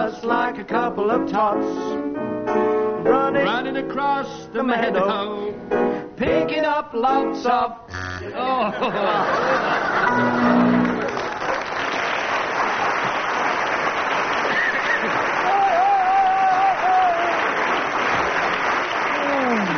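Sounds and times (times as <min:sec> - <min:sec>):
speech: 0:00.2 - 0:10.8
scattered laughter: 0:08.4 - 0:10.7
audience applause: 0:09.4 - 0:19.7.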